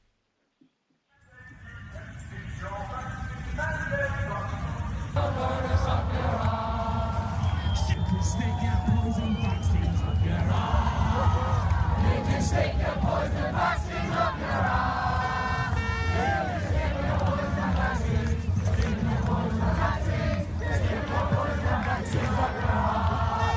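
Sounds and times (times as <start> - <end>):
large protest crowd chanting and shouting in unison: 1.5 - 23.5
whistles: 7.2 - 11.2
speech: 12.3 - 14.8.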